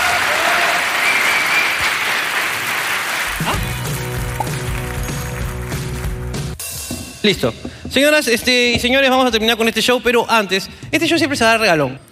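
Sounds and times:
audience applause: 0:00.0 - 0:06.4
speech: 0:07.2 - 0:12.1.

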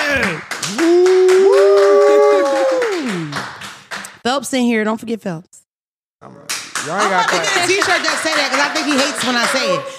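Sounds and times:
audience clapping: 0:00.0 - 0:04.2, 0:06.3 - 0:09.9
whoops and cheers: 0:00.6 - 0:03.3
speech: 0:04.3 - 0:05.6, 0:06.2 - 0:09.9.

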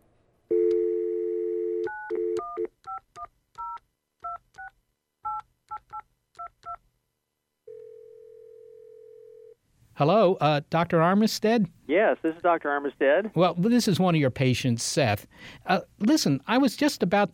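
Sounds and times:
telephone dial tone: 0:00.5 - 0:02.7, 0:07.7 - 0:09.6
speech: 0:10.0 - 0:17.3.

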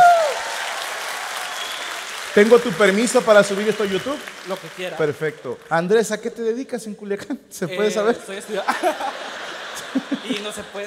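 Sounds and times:
audience applause: 0:00.0 - 0:05.8, 0:08.6 - 0:10.8
speech: 0:02.4 - 0:10.8
laughter: 0:07.8 - 0:10.8.

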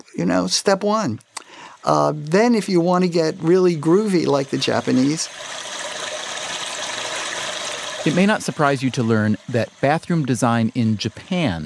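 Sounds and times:
speech: 0:00.2 - 0:05.6, 0:08.0 - 0:11.6
toilet sound-masking device imitating a flushing toilet: 0:01.8 - 0:11.6.

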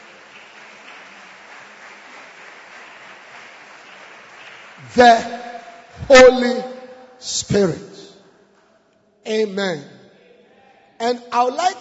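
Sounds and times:
audience clapping hands: 0:00.0 - 0:06.8
speech: 0:04.8 - 0:05.4, 0:06.0 - 0:07.9, 0:09.2 - 0:09.9, 0:11.0 - 0:11.7.

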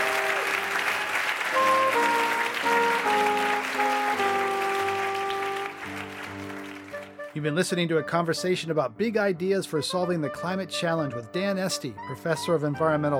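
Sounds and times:
audience applause: 0:00.0 - 0:07.3
speech: 0:07.4 - 0:13.1.

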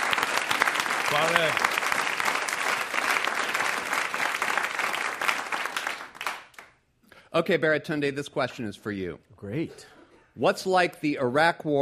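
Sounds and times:
audience applauding a comedian: 0:00.0 - 0:06.8
speech: 0:01.1 - 0:01.8, 0:07.4 - 0:11.7.

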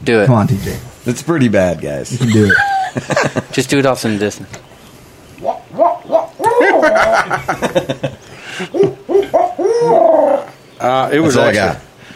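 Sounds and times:
speech: 0:00.0 - 0:04.6, 0:07.0 - 0:08.9, 0:10.8 - 0:11.8
laughter: 0:02.1 - 0:04.3, 0:06.4 - 0:09.5
person imitating an owl hoot: 0:05.4 - 0:07.3, 0:08.6 - 0:10.6.

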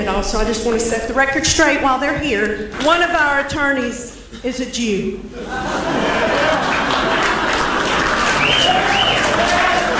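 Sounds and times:
speech: 0:00.0 - 0:06.6
crowd laughing: 0:05.3 - 0:09.9
people cheering: 0:05.5 - 0:09.9
scattered applause: 0:05.9 - 0:09.9.

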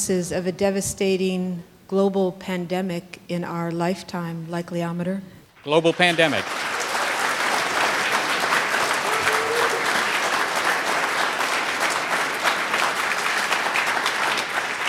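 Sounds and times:
speech: 0:00.0 - 0:06.7
audience applause: 0:05.6 - 0:14.8.

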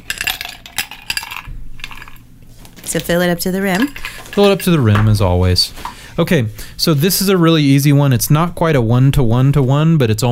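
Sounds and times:
ice cubes clinking into a glass: 0:00.0 - 0:02.2, 0:03.7 - 0:05.1
speech: 0:02.9 - 0:10.3.

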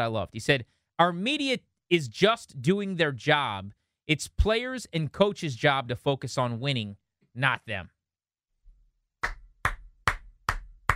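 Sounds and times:
speech: 0:00.0 - 0:08.0
single hand clap: 0:09.2 - 0:10.9.

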